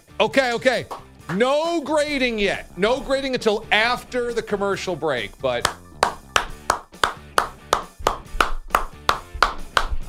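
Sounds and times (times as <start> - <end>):
speech: 0.2 - 5.8
polite tennis-style hand clapping: 0.8 - 1.5, 5.6 - 10.0.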